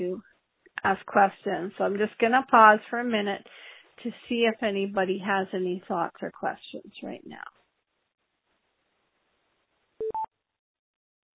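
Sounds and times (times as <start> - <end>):
speech: 0.0 - 7.6
beep: 10.0 - 10.3.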